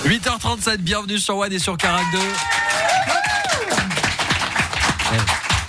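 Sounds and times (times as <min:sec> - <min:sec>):
speech: 0:00.1 - 0:02.7
audience applause: 0:01.8 - 0:05.6.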